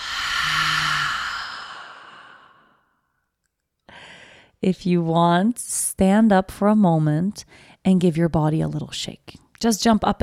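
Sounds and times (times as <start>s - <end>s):
deep breath exhaled through an open mouth in a New Year's intention ceremony: 0.0s - 2.8s
speech: 4.6s - 10.2s.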